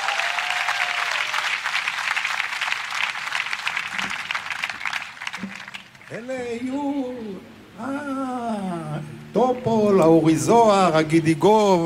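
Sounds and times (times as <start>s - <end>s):
audience applause: 0.0s - 6.2s
speech: 6.1s - 11.8s.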